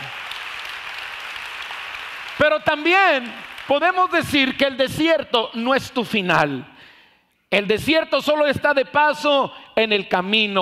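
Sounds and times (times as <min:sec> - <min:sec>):
audience applause: 0:00.0 - 0:04.0
speech: 0:02.4 - 0:06.7, 0:07.5 - 0:10.5.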